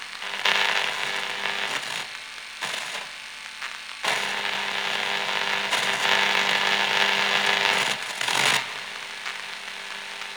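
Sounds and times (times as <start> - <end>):
radio static: 0.2 - 1.8, 4.1 - 10.3.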